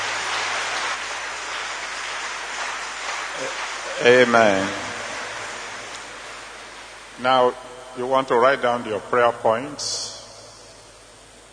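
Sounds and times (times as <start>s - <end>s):
audience applause: 0.0s - 6.6s
speech: 4.0s - 4.8s, 7.2s - 10.2s.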